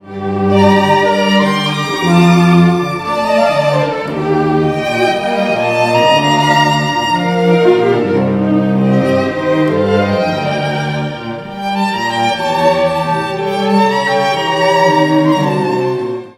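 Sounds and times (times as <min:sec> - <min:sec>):
quartet playing: 0:00.1 - 0:16.2.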